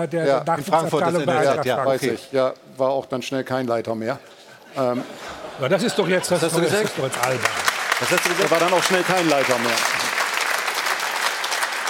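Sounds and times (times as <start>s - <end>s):
speech: 0.0s - 10.1s
laughter: 4.7s - 7.5s
studio audience applause: 6.3s - 11.8s.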